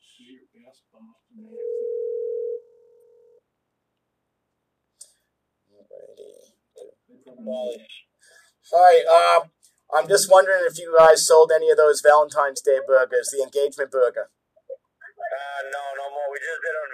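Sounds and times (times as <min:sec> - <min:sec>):
speech: 0:00.6 - 0:02.1, 0:07.3 - 0:08.1, 0:08.7 - 0:14.4
steady mid-pitched phone ring tone: 0:01.5 - 0:03.4.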